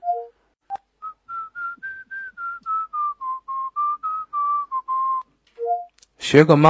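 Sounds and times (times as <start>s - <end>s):
human whistling: 0.0s - 0.3s, 1.0s - 5.9s.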